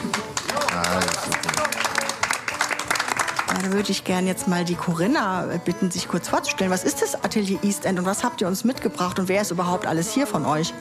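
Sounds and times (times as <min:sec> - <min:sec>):
audience applause: 0:00.0 - 0:03.9
speech: 0:03.6 - 0:10.8.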